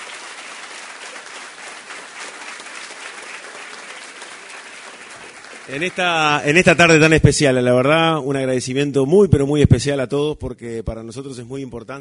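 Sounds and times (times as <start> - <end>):
audience applause: 0.0 - 7.1
speech: 5.7 - 11.9.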